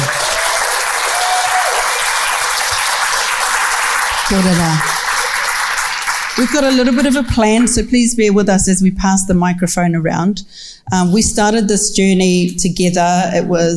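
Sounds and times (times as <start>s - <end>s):
audience applause: 0.0s - 7.1s
speech: 4.3s - 4.9s, 6.4s - 13.7s.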